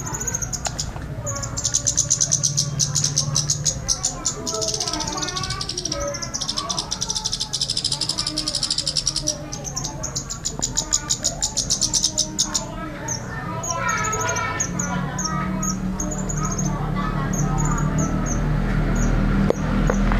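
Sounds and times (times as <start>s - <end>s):
songbird chirping: 0.0s - 20.1s.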